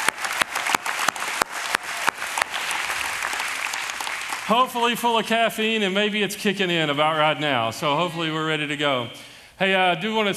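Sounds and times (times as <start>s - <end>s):
church congregation applauding: 0.0s - 7.7s
speech: 4.5s - 10.3s.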